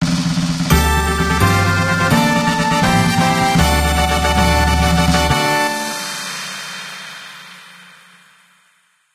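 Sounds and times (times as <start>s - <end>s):
fanfare: 0.7s - 6.7s.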